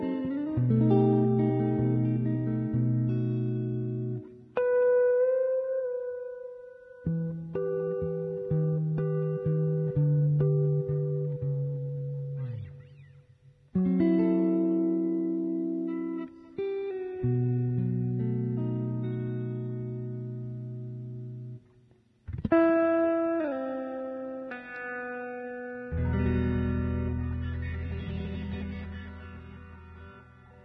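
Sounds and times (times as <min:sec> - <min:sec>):
electric guitar playing a jazz standard: 0:00.0 - 0:30.6.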